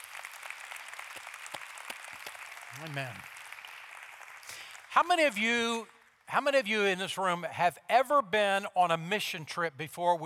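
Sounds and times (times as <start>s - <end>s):
crowd applauding: 0.0s - 6.3s
speech: 2.7s - 3.4s, 5.0s - 10.2s.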